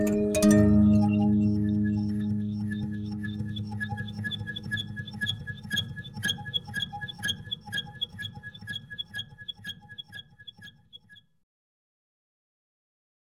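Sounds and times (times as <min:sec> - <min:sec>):
array mbira: 0:00.0 - 0:08.0.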